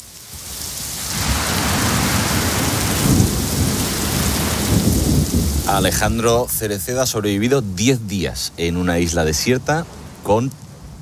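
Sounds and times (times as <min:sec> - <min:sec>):
heavy rain: 0:00.0 - 0:10.9
thunder: 0:01.1 - 0:06.3
speech: 0:05.7 - 0:10.6.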